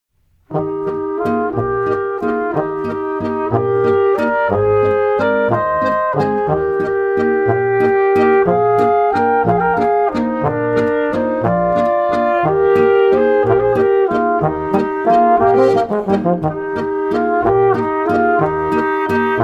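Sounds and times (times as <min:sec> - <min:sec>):
wedding waltz music: 0:00.5 - 0:19.4.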